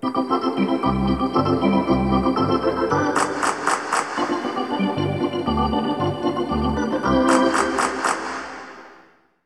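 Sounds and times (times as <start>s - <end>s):
hockey arena organ: 0.0s - 8.8s.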